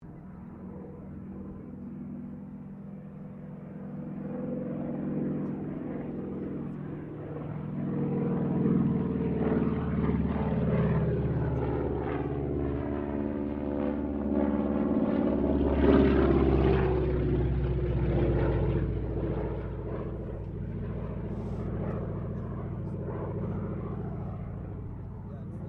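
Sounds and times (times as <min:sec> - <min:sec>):
CAC CA-25 Winjeel fighter trainer aircraft passing: 0:00.0 - 0:25.6.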